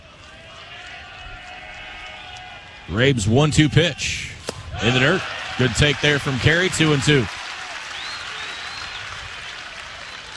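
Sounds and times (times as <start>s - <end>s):
stadium crowd clapping and cheering: 0.0s - 2.9s, 4.6s - 10.3s
speech: 2.9s - 7.4s
faint whistle: 7.9s - 9.2s.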